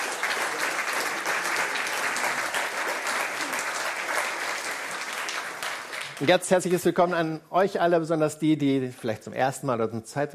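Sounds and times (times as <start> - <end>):
audience applause welcoming a speaker: 0.0 - 6.4
speech: 6.2 - 10.3.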